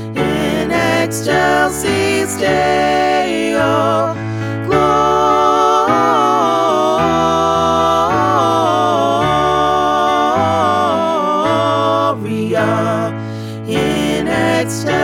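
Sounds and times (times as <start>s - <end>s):
full Christmas choir singing: 0.0s - 15.0s.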